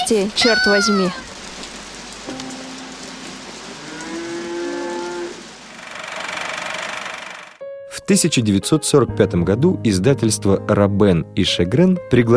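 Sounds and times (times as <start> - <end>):
rain falling: 0.0 - 7.6
speech: 0.1 - 1.3, 8.1 - 12.3.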